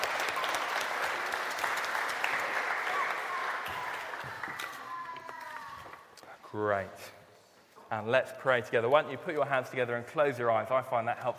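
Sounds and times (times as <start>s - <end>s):
audience clapping: 0.0s - 6.0s
speech: 6.5s - 7.2s, 7.9s - 11.3s.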